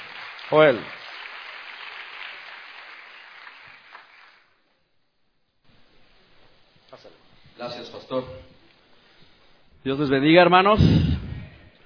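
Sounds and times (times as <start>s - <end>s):
audience applause: 0.0s - 4.6s
speech: 0.5s - 1.0s, 7.6s - 8.5s, 9.8s - 11.1s.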